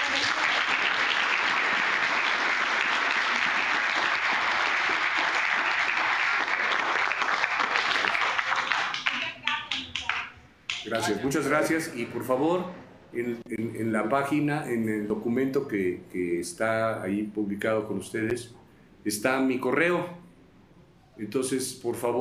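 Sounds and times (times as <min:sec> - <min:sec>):
students' standing applause: 0:00.0 - 0:11.1
speech: 0:10.9 - 0:20.2, 0:21.2 - 0:22.2.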